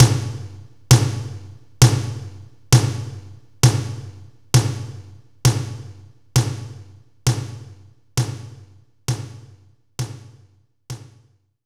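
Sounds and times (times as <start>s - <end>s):
room tom drum: 0.0s - 11.3s.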